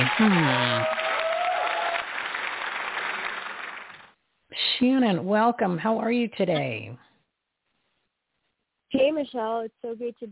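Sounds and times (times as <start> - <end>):
audience applause: 0.0 - 4.1
speech: 0.2 - 1.0, 4.8 - 7.1, 9.1 - 10.3.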